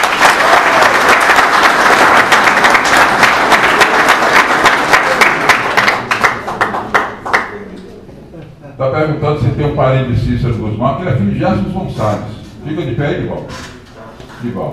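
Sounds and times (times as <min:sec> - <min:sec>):
audience round of applause: 0:00.0 - 0:07.6
speech: 0:09.0 - 0:13.7, 0:14.4 - 0:14.7.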